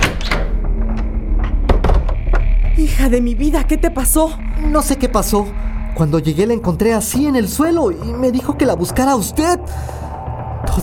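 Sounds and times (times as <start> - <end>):
house front door being opened: 0.0 - 2.8
low rumble: 0.0 - 10.8
speech: 3.0 - 10.0.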